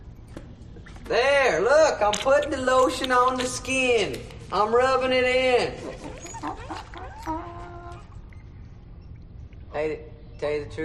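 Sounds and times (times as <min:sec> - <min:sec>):
speech: 0:01.1 - 0:06.1, 0:09.8 - 0:10.8
dog whimpering: 0:05.9 - 0:08.4.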